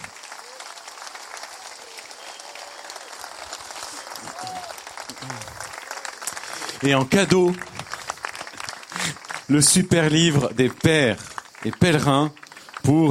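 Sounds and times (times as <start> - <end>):
people calling out: 0.0 - 6.3
audience applause: 0.0 - 13.0
speech: 5.2 - 5.6, 6.8 - 7.7, 9.5 - 13.0.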